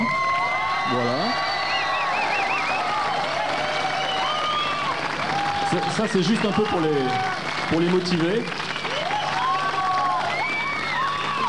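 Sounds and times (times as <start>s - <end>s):
audience whistles and shouts: 0.0s - 3.2s, 3.8s - 4.9s, 8.6s - 11.4s
audience applause: 0.0s - 11.4s
speech: 0.9s - 1.4s, 5.7s - 8.7s.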